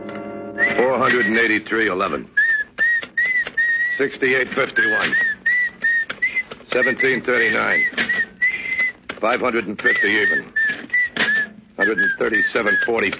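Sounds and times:
creepy human whistling: 0.6s - 1.4s, 2.4s - 4.1s, 4.7s - 9.0s, 9.9s - 13.0s
speech: 1.5s - 2.4s, 4.0s - 5.3s, 6.7s - 8.2s, 9.2s - 10.6s, 11.9s - 13.1s.

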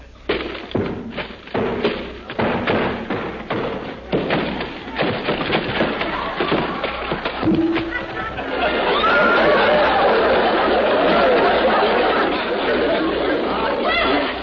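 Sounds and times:
axe chopping bamboo: 0.3s - 7.0s
laughter: 3.8s - 14.4s.

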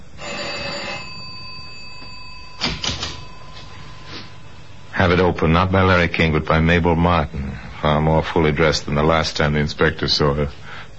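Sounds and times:
apartment doorbell ringing: 0.2s - 4.3s
speech: 5.0s - 10.6s.

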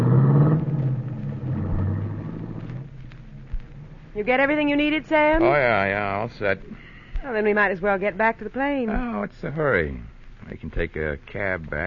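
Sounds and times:
chauffeur-driven limousine driving off toward the highway: 0.0s - 4.0s
speech: 4.2s - 11.8s.

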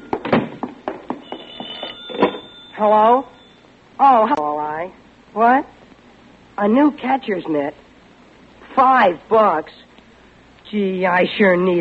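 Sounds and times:
telephone ringing: 1.2s - 3.7s
speech: 2.8s - 3.4s, 4.0s - 4.4s, 5.3s - 5.7s, 6.6s - 7.8s, 8.8s - 9.9s, 10.7s - 11.7s.

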